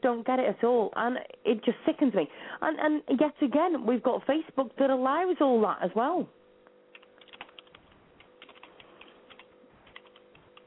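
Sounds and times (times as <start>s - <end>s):
speech: 0.0s - 6.4s
computer keyboard typing: 6.9s - 10.6s.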